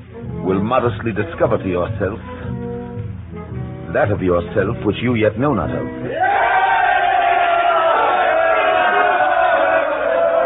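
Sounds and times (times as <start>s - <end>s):
speech: 0.5s - 2.3s, 3.9s - 6.4s
crowd shouting: 6.1s - 10.4s.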